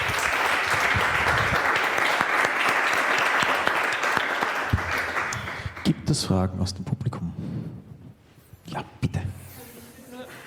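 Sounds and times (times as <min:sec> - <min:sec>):
audience applause: 0:00.0 - 0:06.0
speech: 0:06.1 - 0:07.3.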